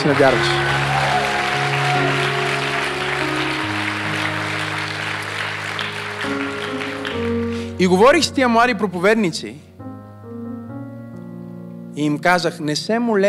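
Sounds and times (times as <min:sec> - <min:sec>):
speech: 0:00.0 - 0:00.8, 0:07.8 - 0:09.7, 0:12.0 - 0:13.2
audience clapping: 0:00.0 - 0:07.8.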